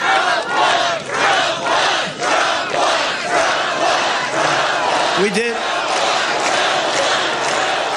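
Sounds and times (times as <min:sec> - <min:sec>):
rally crowd chanting in Iowa: 0:00.0 - 0:07.9.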